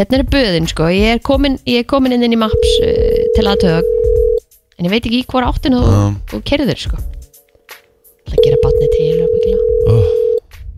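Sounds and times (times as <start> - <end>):
speech: 0.0 - 4.2, 4.8 - 7.1, 8.4 - 10.3
people talking over phone line: 2.4 - 4.4, 8.4 - 10.4
telephone ringing tone on outgoing call: 2.5 - 4.4, 8.4 - 10.4.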